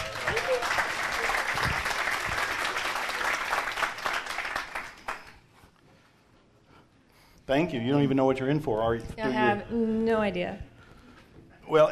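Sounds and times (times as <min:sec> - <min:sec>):
crowd applause: 0:00.0 - 0:05.4
speech: 0:07.5 - 0:10.7, 0:11.7 - 0:11.9.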